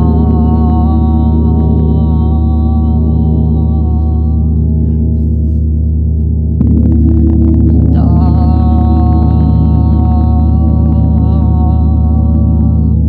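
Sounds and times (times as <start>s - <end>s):
gong humming with deep steady drone: 0.0s - 13.0s.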